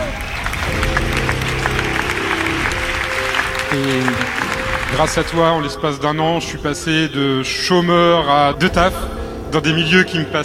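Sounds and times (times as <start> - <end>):
audience applause: 0.0 - 6.1
speech: 3.7 - 4.2, 5.0 - 10.4.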